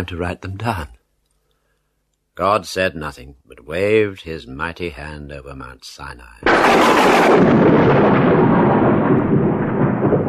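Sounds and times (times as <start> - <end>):
speech: 0.0 - 1.0, 2.4 - 9.0
thunder crash sound effect: 6.4 - 10.2.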